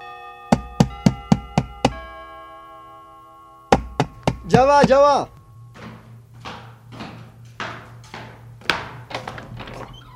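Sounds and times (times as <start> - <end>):
steady ringing tone: 0.0 - 8.6
police officers knocking on a street door at night: 0.5 - 2.0, 3.8 - 5.1
speech: 4.5 - 5.4.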